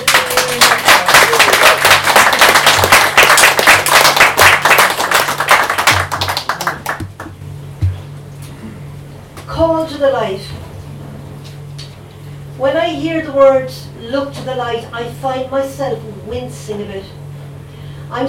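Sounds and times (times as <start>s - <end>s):
audience clapping: 0.0s - 8.0s
speech: 10.1s - 10.5s, 13.0s - 17.2s.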